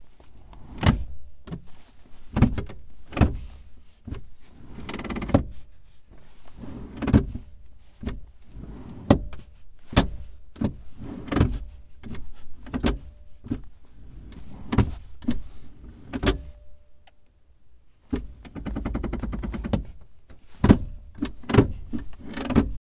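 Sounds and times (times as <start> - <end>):
car seat being adjusted: 2.3 - 5.6, 6.5 - 16.5, 18.1 - 20.0, 20.6 - 22.8.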